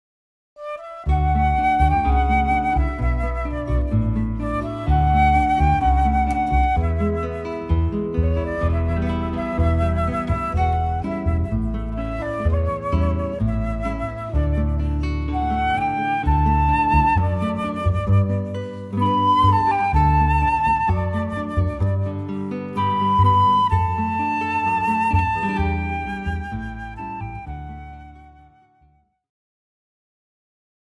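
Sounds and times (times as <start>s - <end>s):
guitar: 0.6s - 29.0s
flute: 0.6s - 29.2s
bass: 1.0s - 28.4s.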